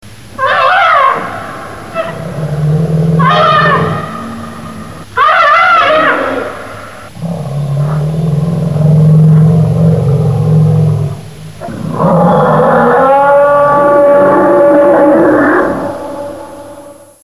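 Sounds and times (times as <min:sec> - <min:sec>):
elephant: 0:00.4 - 0:17.1.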